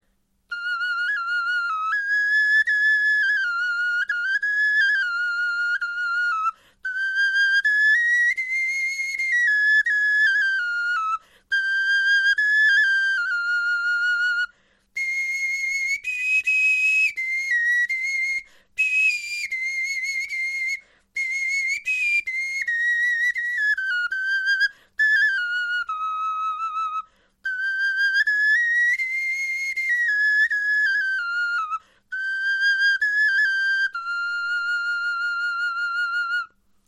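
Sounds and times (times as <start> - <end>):
bone flute melody: 0.5 - 36.5.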